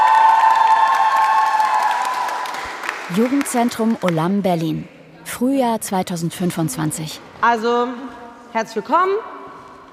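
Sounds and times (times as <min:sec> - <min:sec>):
crowd applause and cheering: 0:00.0 - 0:04.0
speech: 0:03.1 - 0:09.3.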